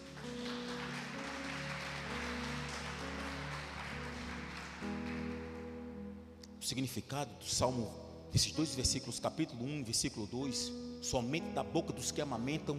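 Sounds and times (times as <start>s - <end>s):
audience applause: 0.0s - 5.8s
speech: 6.6s - 12.7s.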